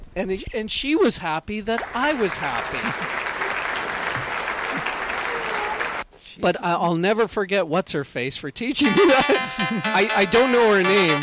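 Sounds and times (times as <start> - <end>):
speech: 0.2 - 3.2, 6.4 - 11.2
crowd round of applause: 1.8 - 6.0
laughter: 2.0 - 5.9, 8.8 - 10.2.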